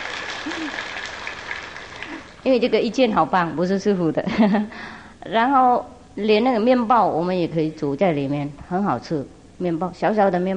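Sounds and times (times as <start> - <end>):
group of people clapping: 0.0 - 2.5
speech: 0.4 - 1.0, 2.4 - 10.5.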